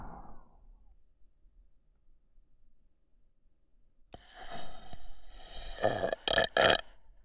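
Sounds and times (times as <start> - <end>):
sleeping breathing: 4.1 - 6.8
burp: 5.8 - 6.8.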